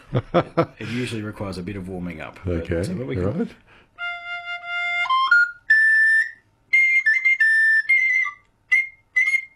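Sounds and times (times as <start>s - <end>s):
speech: 0.1s - 3.8s
sopranino recorder playing high shrill notes: 4.0s - 9.5s.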